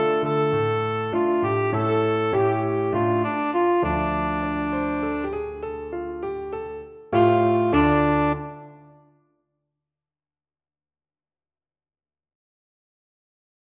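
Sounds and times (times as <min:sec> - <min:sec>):
tenor saxophone: 0:00.0 - 0:05.9, 0:07.2 - 0:09.0.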